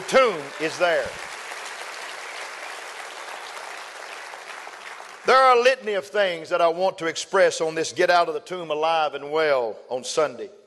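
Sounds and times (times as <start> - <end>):
crowd clapping hands: 0.0 - 5.6
speech: 0.1 - 1.3, 5.2 - 10.6.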